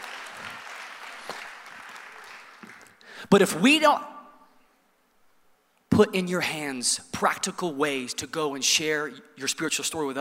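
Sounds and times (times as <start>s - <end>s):
audience clapping: 0.0s - 3.2s
speech: 3.2s - 4.1s, 6.0s - 10.1s.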